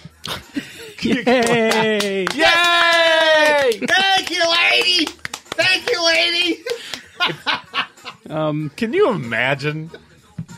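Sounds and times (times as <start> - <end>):
laughter: 0.3 - 4.7, 6.4 - 8.3
speech: 1.0 - 2.7, 8.3 - 10.1
hands clapping: 1.0 - 7.5.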